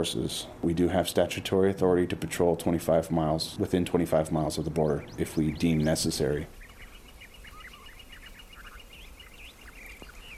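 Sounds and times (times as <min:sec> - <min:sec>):
speech: 0:00.0 - 0:06.6
Gila woodpeckers calling: 0:03.6 - 0:10.3
gilded flicker calling: 0:04.9 - 0:10.3.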